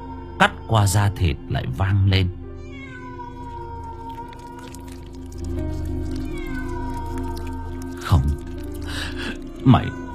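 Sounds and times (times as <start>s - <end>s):
speech: 0.4s - 2.4s, 8.1s - 8.5s, 9.6s - 10.0s
cat yowling mournfully: 2.6s - 10.1s.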